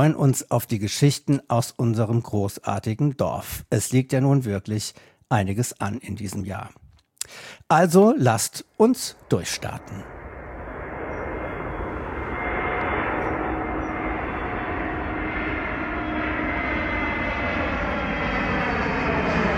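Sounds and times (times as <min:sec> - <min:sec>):
speech: 0:00.0 - 0:10.2
airplane landing, recorded on a phone near the Tarpenbek: 0:07.3 - 0:19.5.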